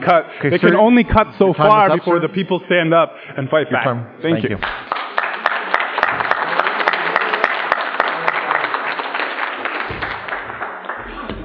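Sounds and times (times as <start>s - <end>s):
speech: 0.0s - 5.0s
audience applause: 4.6s - 11.4s.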